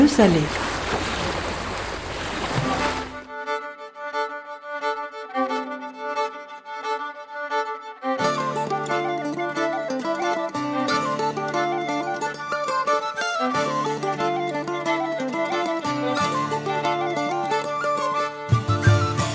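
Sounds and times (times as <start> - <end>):
ocean waves rushing around a sailing boat: 0.0 - 3.3
speech: 0.2 - 0.7
sustained pitched musical tones: 4.8 - 19.3.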